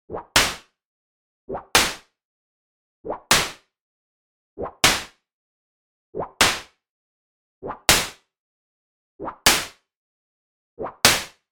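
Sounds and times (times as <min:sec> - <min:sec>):
whip cracks: 0:00.4 - 0:00.7, 0:01.8 - 0:02.1, 0:03.3 - 0:03.6, 0:04.8 - 0:05.2, 0:06.4 - 0:06.8, 0:07.9 - 0:08.2, 0:09.5 - 0:09.8, 0:11.1 - 0:11.4.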